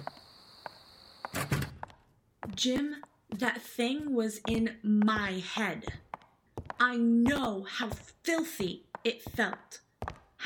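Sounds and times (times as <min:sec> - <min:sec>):
door being opened: 0:01.3 - 0:01.9
speech: 0:02.6 - 0:06.0, 0:06.8 - 0:09.8.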